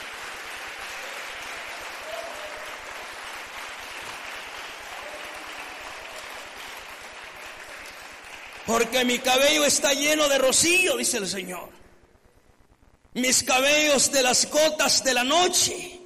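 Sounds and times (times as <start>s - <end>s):
applause: 0.0s - 10.9s
speech: 8.7s - 11.8s, 13.2s - 16.0s.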